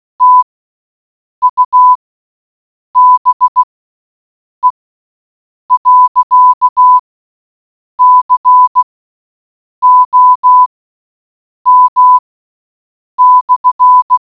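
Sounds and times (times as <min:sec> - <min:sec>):
morse code beeps: 0:00.2 - 0:00.5, 0:01.4 - 0:02.0, 0:03.0 - 0:03.7, 0:05.7 - 0:07.0, 0:08.0 - 0:08.9, 0:09.8 - 0:10.7, 0:11.7 - 0:12.2, 0:13.2 - 0:14.2.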